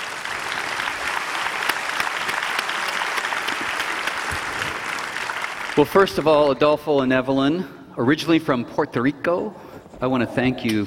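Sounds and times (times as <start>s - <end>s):
audience applause at a church gathering: 0.0s - 6.4s
speech: 5.8s - 10.8s.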